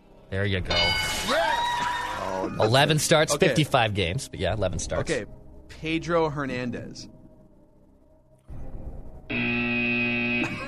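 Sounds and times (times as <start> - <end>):
speech: 0.3 - 1.5, 2.2 - 7.2
electronic buzzer: 9.3 - 10.6.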